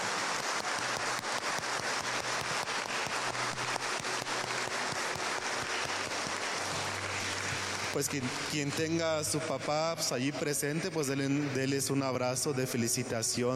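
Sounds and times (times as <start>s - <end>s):
audience applause: 0.0s - 9.9s
speech: 8.0s - 13.5s.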